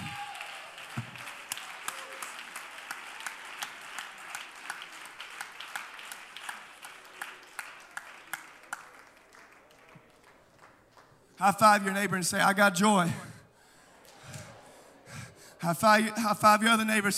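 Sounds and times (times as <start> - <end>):
audience clapping hands: 0.0 - 11.9
speech: 11.4 - 13.3, 15.6 - 17.1.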